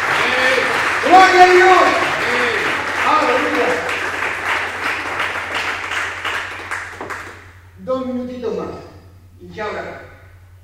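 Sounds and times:
church congregation clapping during a Spanish-language sermon: 0.0s - 7.7s
speech: 1.2s - 2.0s, 9.4s - 10.0s.

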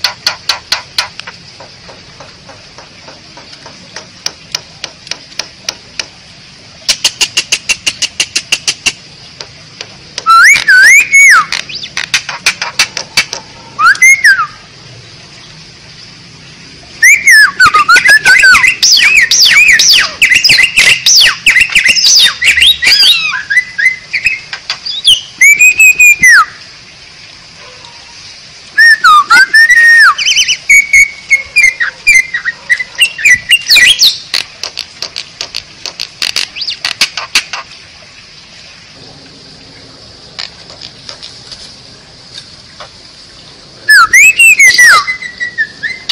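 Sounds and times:
Bali myna song: 6.9s - 9.0s, 10.2s - 14.6s, 17.0s - 26.5s, 28.8s - 37.6s, 43.9s - 46.1s.

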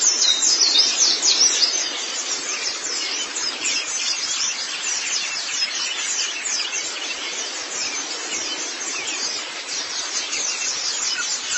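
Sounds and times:
white-eye twittering song: 0.0s - 11.5s.

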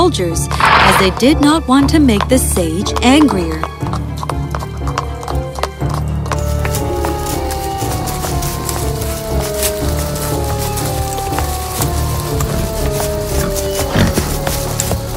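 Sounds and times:
speech: 0.0s - 3.8s
horses' hooves clip-clopping: 0.0s - 15.1s
low rumble: 0.5s - 1.6s.

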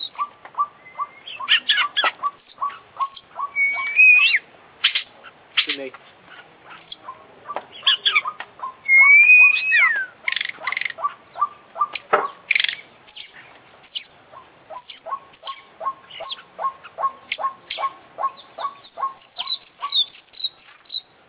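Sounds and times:
Oriental magpie-robin whistling and chattering song: 0.0s - 14.1s, 14.7s - 21.1s.

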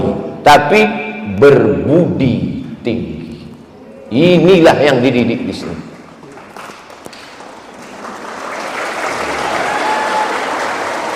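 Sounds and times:
speech: 0.4s - 3.2s, 4.1s - 5.9s
audience applause: 5.9s - 11.1s.

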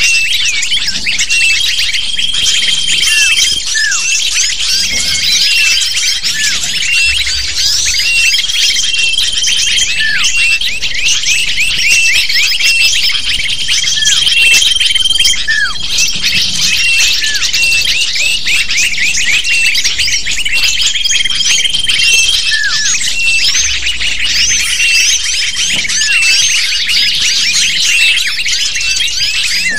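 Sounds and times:
lovebirds calling: 0.0s - 29.7s.

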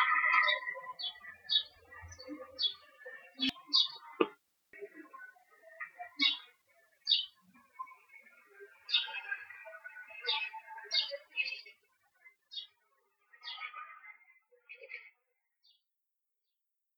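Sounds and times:
bird chirps in Murcia Spain: 0.0s - 4.4s, 5.7s - 8.2s, 8.8s - 11.7s.

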